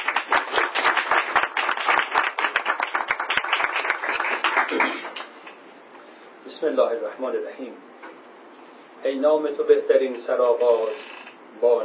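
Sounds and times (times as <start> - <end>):
audience applause: 0.0 - 5.3
speech: 6.6 - 7.9, 9.0 - 11.8.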